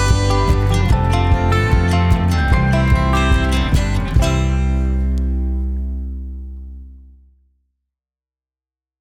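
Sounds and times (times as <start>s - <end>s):
piano: 0.0s - 7.1s.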